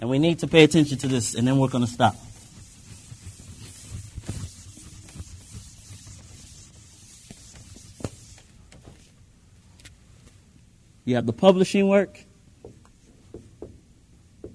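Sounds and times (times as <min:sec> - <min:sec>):
speech: 0:00.0 - 0:02.3, 0:11.1 - 0:12.3
writing on a board: 0:02.0 - 0:08.5.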